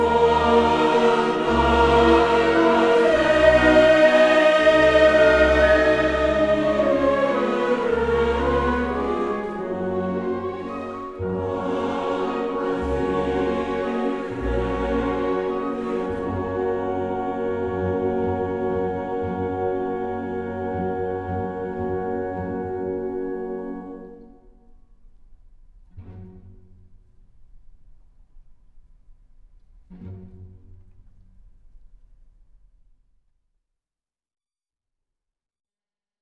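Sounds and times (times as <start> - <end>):
choir: 0.0 - 24.7
orchestra: 0.0 - 32.6.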